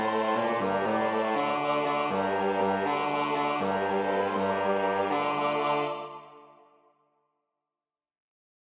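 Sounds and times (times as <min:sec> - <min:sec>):
bass: 0:00.0 - 0:05.7.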